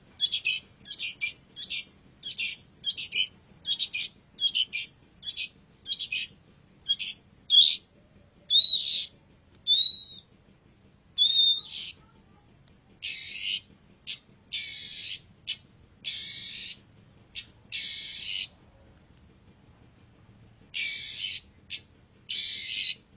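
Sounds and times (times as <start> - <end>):
long-tailed shrike song with chirps and rattling notes: 0.2 - 7.8, 8.5 - 10.3, 11.2 - 12.0, 13.0 - 16.8, 17.4 - 18.5, 20.8 - 23.0.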